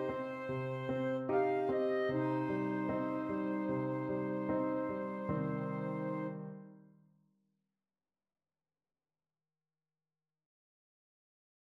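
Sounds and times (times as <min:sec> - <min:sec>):
flute and clarinet duet: 0:00.0 - 0:06.6.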